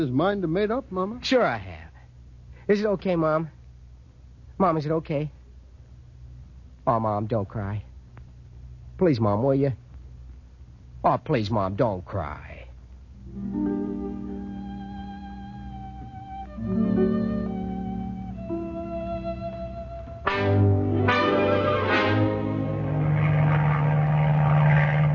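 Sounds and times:
speech: 0:00.0 - 0:01.8, 0:02.7 - 0:03.6, 0:04.6 - 0:05.4, 0:06.9 - 0:07.9, 0:09.0 - 0:09.8, 0:11.0 - 0:12.5, 0:13.3 - 0:13.8
propeller airplane coming in to land: 0:16.9 - 0:25.1.

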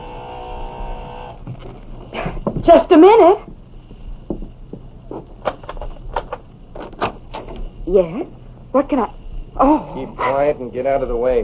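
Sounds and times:
door buzzer: 0:00.0 - 0:01.4
speech: 0:01.5 - 0:03.5, 0:07.9 - 0:11.4.

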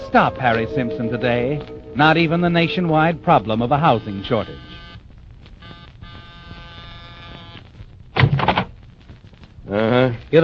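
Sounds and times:
speech: 0:00.1 - 0:04.8, 0:09.7 - 0:10.4
apartment door buzzer being pressed: 0:05.6 - 0:07.6.

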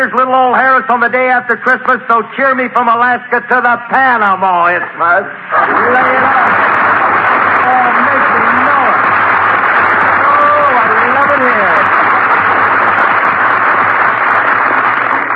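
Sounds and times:
speech: 0:00.0 - 0:06.8
audience applauding an entrance: 0:05.5 - 0:15.3.

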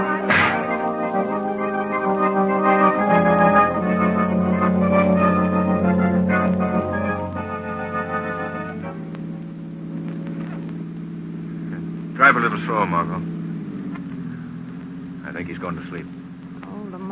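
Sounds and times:
sustained humming ringing metallic tones: 0:00.0 - 0:17.1
robot machine being smashed: 0:00.1 - 0:01.1
speech: 0:15.6 - 0:16.1.

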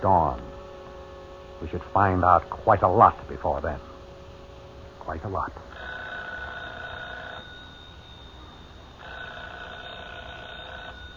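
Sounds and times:
speech: 0:00.0 - 0:00.5, 0:01.6 - 0:03.9, 0:05.0 - 0:05.9
low hum: 0:00.0 - 0:11.1
telephone ringing with buzzing bell-like trill: 0:05.7 - 0:11.1.

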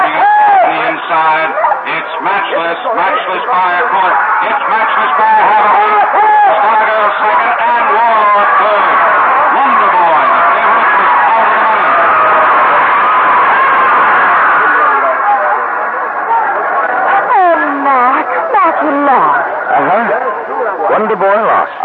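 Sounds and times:
laughter: 0:00.0 - 0:15.5
exclamations: 0:00.0 - 0:21.8
racetrack crowd chattering after a horse race: 0:00.0 - 0:21.8
speech: 0:02.6 - 0:08.8.

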